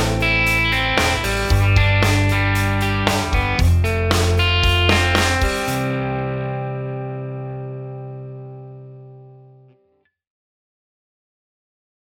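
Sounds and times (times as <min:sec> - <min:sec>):
major chord progressions in root position: 0:00.0 - 0:09.7.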